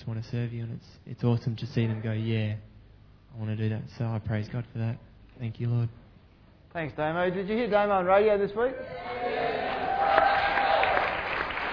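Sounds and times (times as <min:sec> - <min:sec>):
speech: 0:00.1 - 0:02.7, 0:03.3 - 0:06.0, 0:06.8 - 0:09.3
audience clapping: 0:09.4 - 0:11.7.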